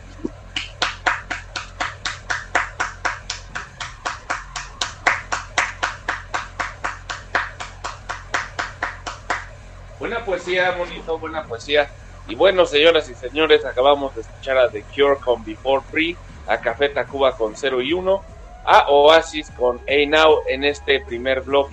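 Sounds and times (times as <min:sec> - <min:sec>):
applause: 0:00.5 - 0:09.6
speech: 0:10.4 - 0:21.7.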